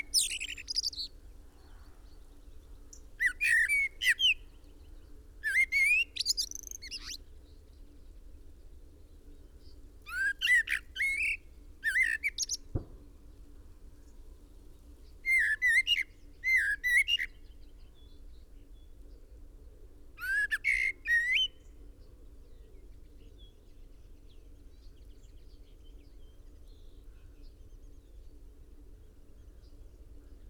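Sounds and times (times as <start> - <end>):
common blackbird whistling: 0.0 - 1.1, 3.2 - 4.4, 5.4 - 7.2, 10.1 - 12.6, 15.2 - 17.3, 20.2 - 21.6
sharp knock: 12.7 - 13.0.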